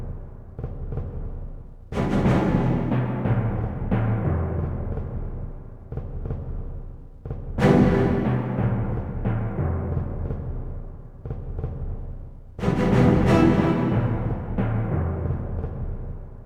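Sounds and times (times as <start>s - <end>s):
game arena level music: 1.9s - 5.7s, 7.6s - 12.0s, 12.6s - 16.4s.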